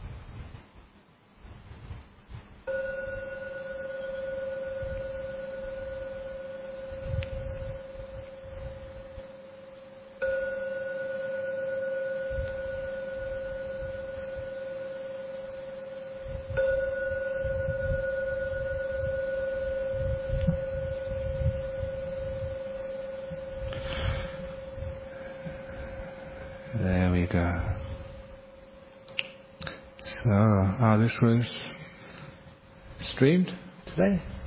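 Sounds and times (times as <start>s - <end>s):
meditation gong ringing: 2.6s - 29.0s
speech: 31.1s - 31.7s, 33.2s - 34.3s.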